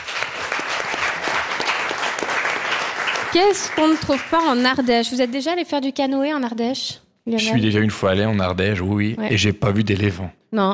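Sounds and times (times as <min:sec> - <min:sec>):
studio audience applauding: 0:00.0 - 0:05.7
speech: 0:03.3 - 0:10.7.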